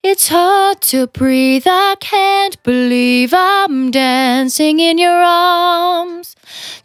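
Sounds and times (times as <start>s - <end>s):
velvet vocal in C at 70 bpm: 0.0s - 6.8s.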